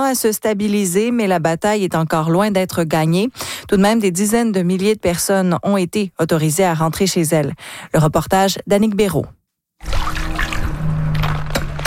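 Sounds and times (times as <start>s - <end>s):
speech: 0.1s - 10.2s
water sloshing as a skimmer net is dipped into a backyard swimming pool: 9.8s - 11.8s.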